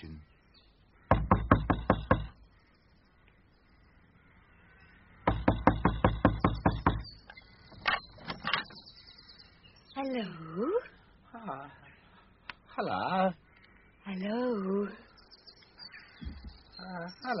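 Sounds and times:
knocking on a wooden door: 1.1 - 2.4, 5.2 - 7.1
speech: 10.0 - 11.8, 12.8 - 13.4, 14.1 - 15.0, 16.8 - 17.3.

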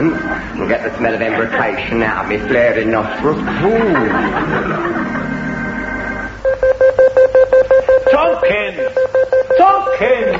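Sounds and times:
speech: 0.0 - 5.2, 8.1 - 10.3
laughter: 0.0 - 5.8
alarm ringing: 3.5 - 10.3.

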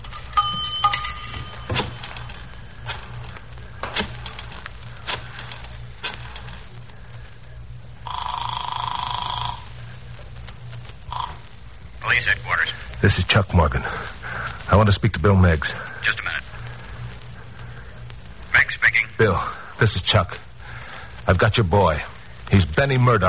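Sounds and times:
coin dropping into a payphone slot: 0.0 - 2.4
steady humming tone: 0.0 - 23.2
speech: 13.0 - 16.2, 19.2 - 20.4, 21.3 - 23.2.

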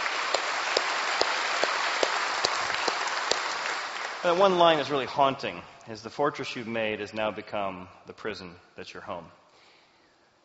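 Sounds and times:
audience applause: 0.0 - 4.9
speech: 4.2 - 9.4.

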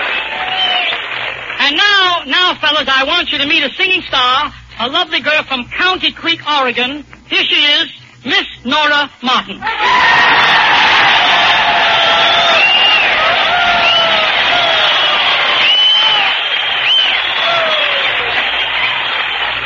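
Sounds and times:
audience whistling: 0.0 - 1.4, 9.8 - 19.6
speech: 1.7 - 10.6.

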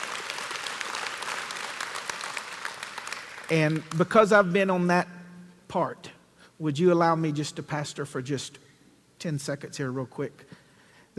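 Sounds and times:
crowd clapping: 0.0 - 4.2
speech: 3.5 - 8.6, 9.2 - 10.6.

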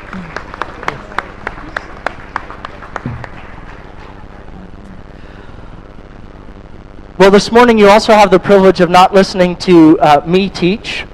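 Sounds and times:
audience applause welcoming teachers at a church gathering: 0.0 - 4.8
speech: 7.2 - 11.1.

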